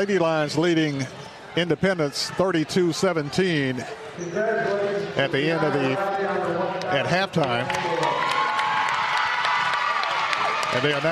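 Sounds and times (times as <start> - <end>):
speech: 0.0 - 8.2, 10.7 - 11.1
audience at a girls' high school basketball game clapping and cheering: 6.7 - 11.1.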